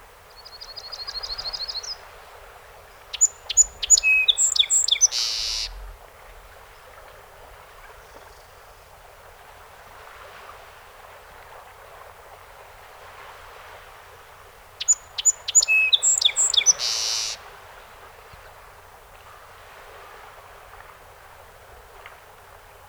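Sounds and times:
song sparrow song: 0.3 - 2.2, 2.8 - 6.1, 14.7 - 17.4.

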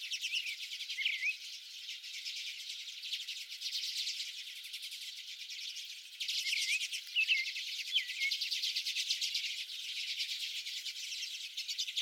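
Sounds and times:
American robin singing: 0.0 - 12.0.

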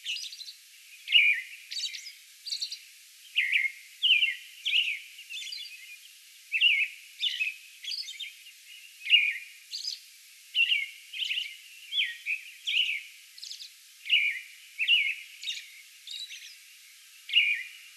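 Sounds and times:
American robin song: 0.0 - 10.0, 10.6 - 16.6, 17.3 - 17.8.

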